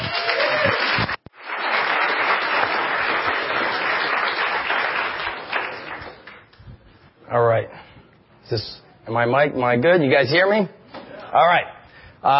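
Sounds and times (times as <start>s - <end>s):
crowd applause for speaker: 0.0s - 6.5s
speech: 8.5s - 12.3s.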